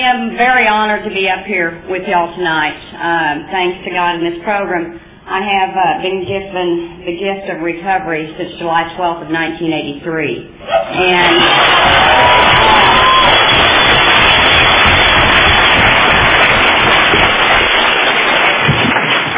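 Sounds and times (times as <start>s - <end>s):
speech: 0.0s - 12.4s
crowd clapping and cheering at a Narcotics Anonymous world convention: 10.7s - 19.3s.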